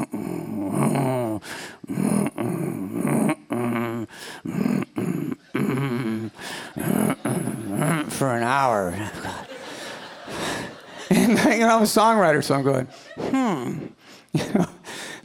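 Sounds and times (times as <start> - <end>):
voice imitating chugging boat engine: 0.0 - 9.3
laughter: 5.4 - 14.8
speech: 8.2 - 9.4, 11.1 - 14.7.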